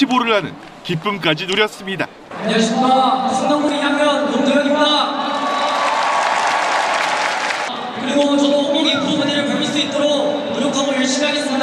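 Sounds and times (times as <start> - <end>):
speech: 0.0 - 5.3, 8.1 - 11.6
cheering and applause: 5.2 - 7.7.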